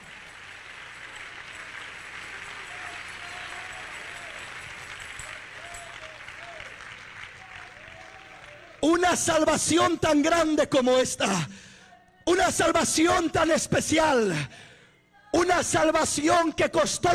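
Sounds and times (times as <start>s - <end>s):
audience clapping hands: 0.0s - 10.9s
speech: 8.8s - 11.6s, 12.5s - 14.7s, 15.4s - 17.1s.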